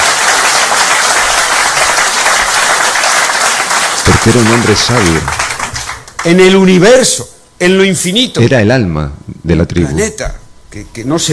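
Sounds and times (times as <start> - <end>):
crowd applauding: 0.0 - 6.6
speech: 4.2 - 5.5, 6.2 - 11.3.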